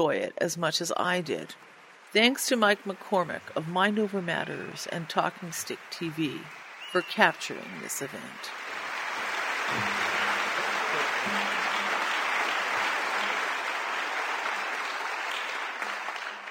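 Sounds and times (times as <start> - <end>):
speech: 0.0 - 8.7, 9.7 - 10.2, 11.0 - 11.6
audience applause: 5.2 - 16.5.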